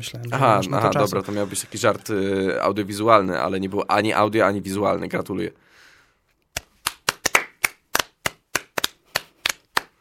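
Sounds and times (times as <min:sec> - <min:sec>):
speech: 0:00.0 - 0:05.8
two people clapping hands: 0:06.6 - 0:10.0.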